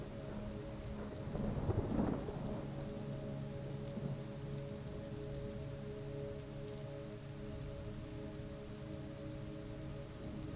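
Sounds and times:
soft soothing music: 0.0 - 10.5
steady rain: 0.0 - 10.5
thunder rumble: 0.9 - 3.2.

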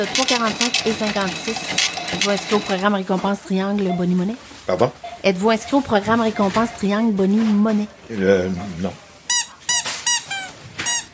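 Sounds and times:
speech: 0.0 - 9.0
squeaky dog toy squeaking: 8.5 - 11.1.

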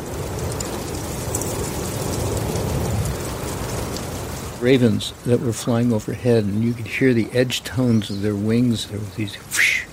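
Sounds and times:
breeze in the canopy of the redwoods: 0.0 - 9.9
speech: 4.6 - 9.8.

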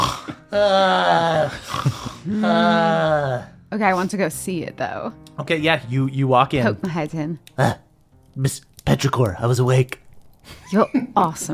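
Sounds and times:
person imitating loud snoring: 0.0 - 3.5
speech: 0.5 - 7.8, 8.4 - 11.5.

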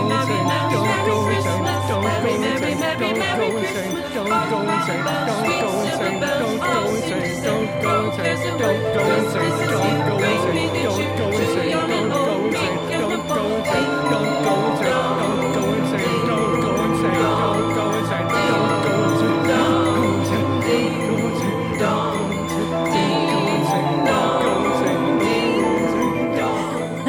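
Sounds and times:
holiday carol played on tubular bells: 0.0 - 27.0.

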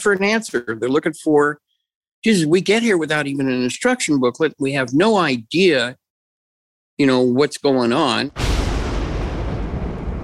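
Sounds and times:
speech: 0.0 - 1.6, 2.2 - 6.0, 7.0 - 8.4
thunder: 8.4 - 10.2.

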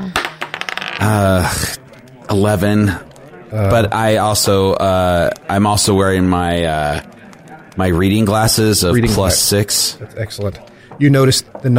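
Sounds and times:
dice clattering onto a hard surface: 0.1 - 1.3
speech: 1.0 - 7.1, 7.8 - 11.7.

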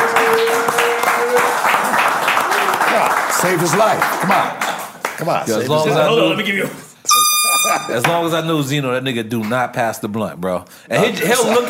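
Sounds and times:
round of applause: 0.0 - 5.4
speech: 3.5 - 4.6, 5.2 - 11.6.

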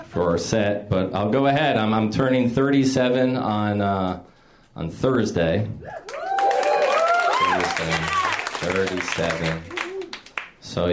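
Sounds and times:
speech: 0.0 - 6.2, 7.6 - 9.8, 10.6 - 10.9
cheers and whoops: 5.8 - 8.7, 9.4 - 10.3
audience applause: 6.0 - 10.6.

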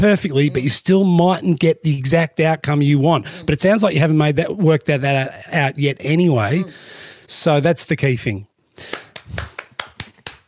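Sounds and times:
speech: 0.0 - 9.5
person clapping hands: 8.8 - 10.4.

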